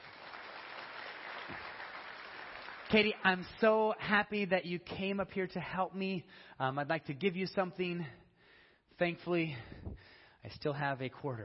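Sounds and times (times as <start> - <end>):
audience clapping: 0.0 - 3.8
speech: 2.9 - 8.2, 9.0 - 11.4.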